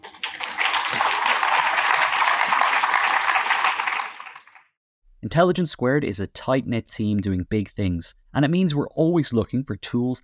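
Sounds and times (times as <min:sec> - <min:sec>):
crowd applauding: 0:00.0 - 0:04.8
speech: 0:05.2 - 0:10.2.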